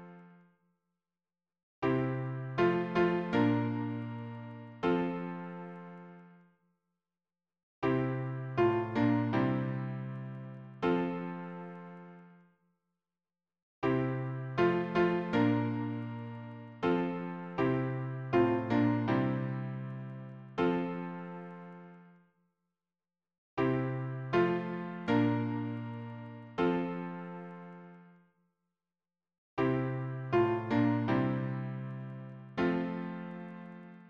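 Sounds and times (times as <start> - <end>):
piano harmony: 1.9 - 6.3, 7.9 - 12.3, 13.9 - 22.0, 23.6 - 28.1, 29.6 - 34.0.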